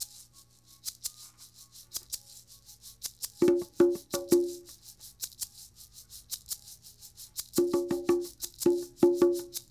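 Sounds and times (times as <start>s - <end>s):
shaker: 0.0s - 9.7s
conga drum: 3.4s - 4.8s, 7.5s - 9.7s.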